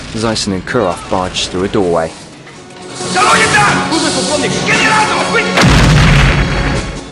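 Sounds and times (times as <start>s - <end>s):
speech: 0.1s - 2.2s, 3.1s - 5.6s
grenade explosion collapsing a walkway in an action film: 5.6s - 7.0s.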